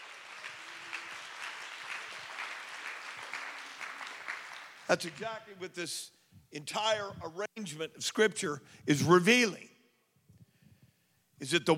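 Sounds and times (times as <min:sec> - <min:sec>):
audience clapping hands: 0:00.0 - 0:05.6
speech: 0:04.9 - 0:09.7, 0:11.4 - 0:11.7.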